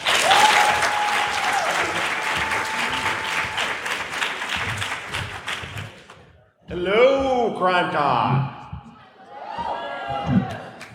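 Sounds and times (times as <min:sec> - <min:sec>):
crowd cheering: 0:00.0 - 0:05.4, 0:09.2 - 0:10.9
speech: 0:07.6 - 0:08.4.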